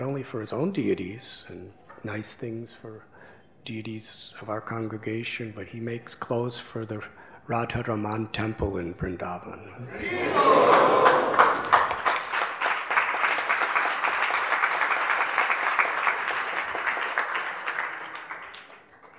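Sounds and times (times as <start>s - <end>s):
speech: 0.2s - 11.4s
audience applause: 10.2s - 19.1s.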